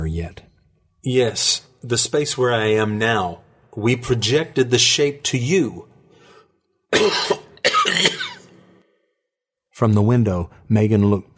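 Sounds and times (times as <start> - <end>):
speech: 0.2 - 0.4, 1.0 - 5.9, 6.9 - 8.2, 9.8 - 11.3
painful cough: 6.9 - 8.8.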